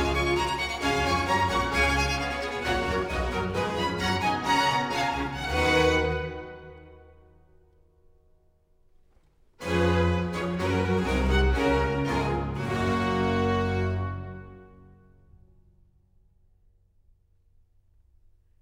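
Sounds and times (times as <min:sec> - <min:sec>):
concerto grosso allegro in G major: 0:00.0 - 0:07.2, 0:09.6 - 0:14.9.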